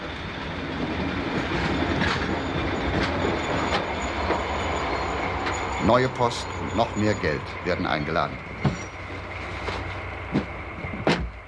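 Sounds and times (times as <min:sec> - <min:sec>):
train pulling into the station at Carlisle: 0:00.0 - 0:11.4
train wheels clacking: 0:00.0 - 0:11.4
thin high squeal: 0:01.6 - 0:10.0
speech: 0:05.8 - 0:08.5.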